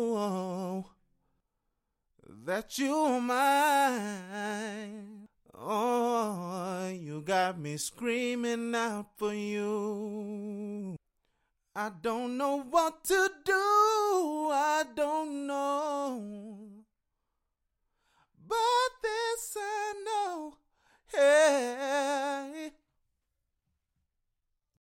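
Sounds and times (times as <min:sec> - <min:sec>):
a cappella pop RnB singing in C sharp minor: 0:00.0 - 0:01.0, 0:02.3 - 0:11.0, 0:11.8 - 0:16.9, 0:18.4 - 0:22.8.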